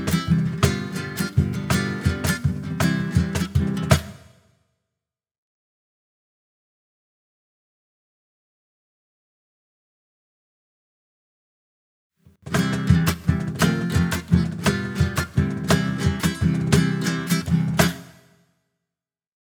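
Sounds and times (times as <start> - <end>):
instrumental music: 0.0 - 4.3, 12.4 - 18.2.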